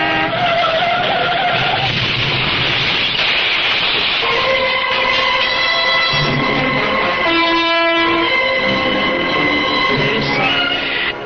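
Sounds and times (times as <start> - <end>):
blaring car horn: 0.0 - 1.8, 4.2 - 10.8
car crash screeching and clattering: 0.0 - 11.1.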